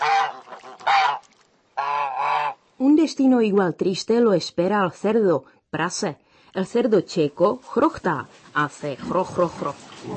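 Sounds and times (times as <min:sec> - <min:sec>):
goose honking: 0:00.0 - 0:02.6
speech: 0:03.0 - 0:10.1.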